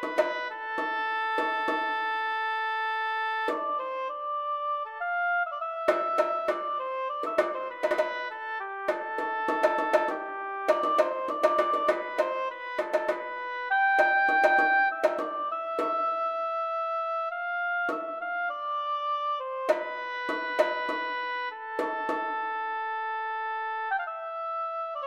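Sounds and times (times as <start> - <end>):
melodic instrument playing a canon: 0.0 - 25.0.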